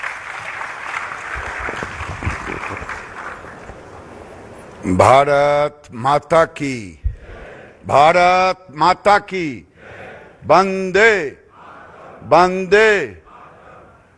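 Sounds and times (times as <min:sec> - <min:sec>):
applause welcoming India's textile minister Giriraj Singh at a National Handloom Day event: 0:00.0 - 0:04.1
loud amplified voice speaking in short bursts: 0:04.8 - 0:13.5
speech: 0:04.9 - 0:07.0, 0:07.8 - 0:09.7, 0:10.4 - 0:11.4, 0:12.2 - 0:13.2.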